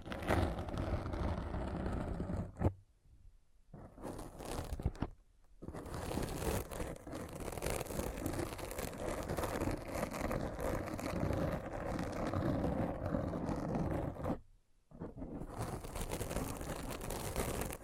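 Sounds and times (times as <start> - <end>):
rough scratching: 0.0 - 2.7, 3.8 - 17.8.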